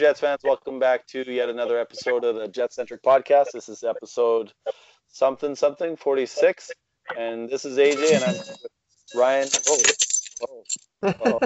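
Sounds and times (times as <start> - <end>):
talking: 0.0 - 4.5, 5.2 - 8.6
speech: 0.0 - 11.4
keys jangling: 7.9 - 10.9.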